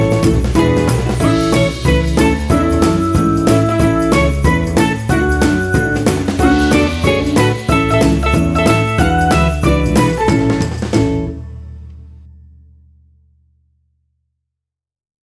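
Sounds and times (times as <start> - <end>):
cheerful Christmas song: 0.0 - 11.7.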